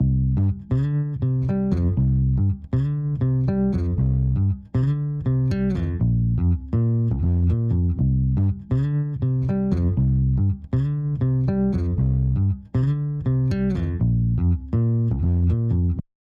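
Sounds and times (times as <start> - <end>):
bass: 0.0 - 16.1.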